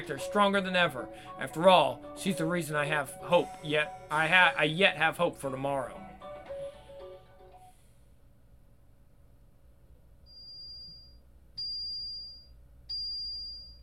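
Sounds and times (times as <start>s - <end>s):
speech: 0.0s - 6.0s
alarm ringing: 10.3s - 13.8s.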